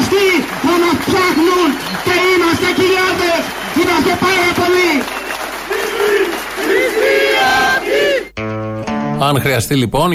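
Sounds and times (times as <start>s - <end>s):
crowd cheering: 0.0s - 8.4s
speech: 9.2s - 10.1s.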